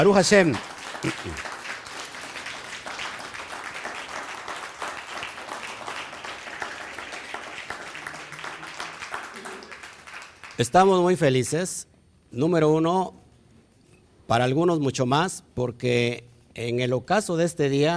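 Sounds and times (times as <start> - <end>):
speech: 0.0 - 1.5, 10.6 - 13.2, 14.3 - 17.9
audience applause: 0.0 - 10.7.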